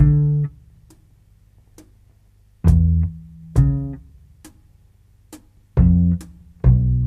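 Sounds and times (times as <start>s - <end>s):
bass loops: 0.0s - 1.1s, 2.6s - 4.7s, 5.7s - 7.0s.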